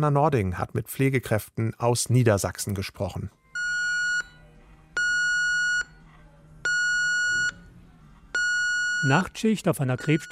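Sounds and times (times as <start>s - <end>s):
speech: 0.0s - 3.4s, 9.0s - 10.2s
ECG monitor alarm beeping: 3.6s - 4.4s, 5.0s - 6.0s, 6.6s - 7.7s, 8.4s - 10.2s.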